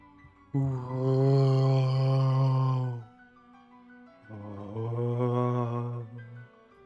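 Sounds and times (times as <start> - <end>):
voice imitating eerie wind-like moaning: 0.6 - 3.1, 4.3 - 6.4.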